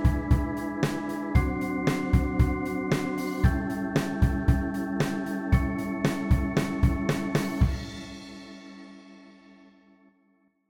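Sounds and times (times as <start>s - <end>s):
blues rock backing track: 0.0s - 8.4s.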